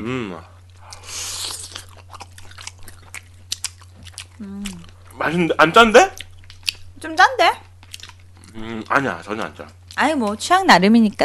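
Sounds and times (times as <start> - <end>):
speech: 0.0 - 0.6, 4.4 - 6.2, 7.0 - 7.6, 8.6 - 11.2
person chewing and crunching food while tasting: 0.6 - 7.0, 7.6 - 10.0.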